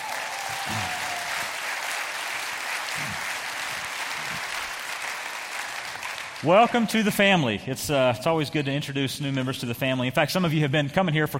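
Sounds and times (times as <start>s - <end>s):
church audience applause welcoming new members: 0.0s - 6.8s
speech: 6.4s - 11.3s.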